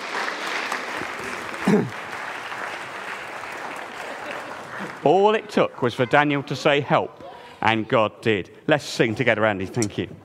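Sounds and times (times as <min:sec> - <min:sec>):
crowd clapping: 0:00.0 - 0:06.2
speech: 0:01.7 - 0:02.0, 0:05.0 - 0:10.2.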